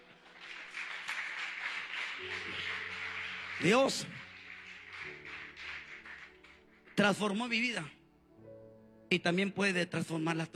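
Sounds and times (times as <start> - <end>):
audience clapping hands: 0.0 - 8.0
speech: 3.6 - 4.2, 7.0 - 8.0, 9.1 - 10.5.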